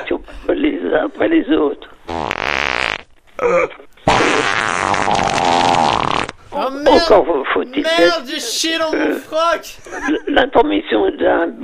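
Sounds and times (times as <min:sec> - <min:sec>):
speech: 0:00.9 - 0:02.3, 0:07.0 - 0:11.6
fart: 0:02.1 - 0:03.2, 0:04.0 - 0:06.4.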